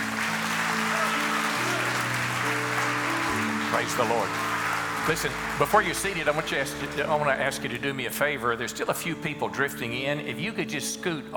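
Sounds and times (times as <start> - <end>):
audience applause: 0.0 - 7.8
organ-like chords: 0.0 - 11.3
speech: 3.8 - 11.3.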